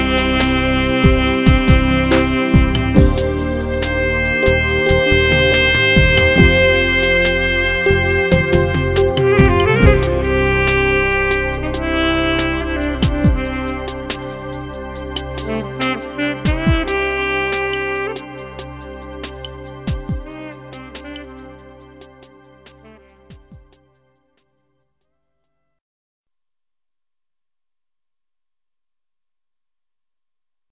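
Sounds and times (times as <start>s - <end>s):
cafe saxophone music: 0.0s - 24.0s.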